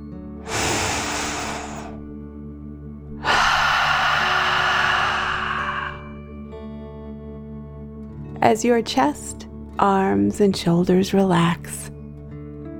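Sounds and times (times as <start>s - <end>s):
deep breath in: 0.4s - 2.1s, 3.2s - 6.2s
speech: 8.4s - 11.9s.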